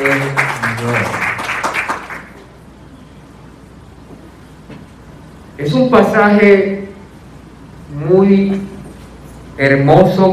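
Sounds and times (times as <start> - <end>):
audience applause: 0.0 - 2.4
speech: 5.9 - 6.7, 9.6 - 10.3.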